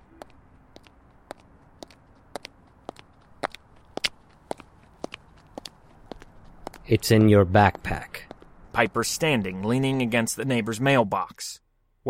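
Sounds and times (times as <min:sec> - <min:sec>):
footsteps walking out of a house: 0:00.0 - 0:09.0
speech: 0:06.9 - 0:12.0.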